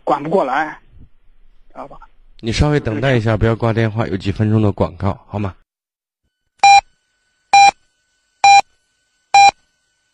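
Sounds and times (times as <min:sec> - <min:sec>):
speech: 0:00.1 - 0:00.8, 0:01.8 - 0:05.6
radio time signal beeps: 0:09.4 - 0:09.6.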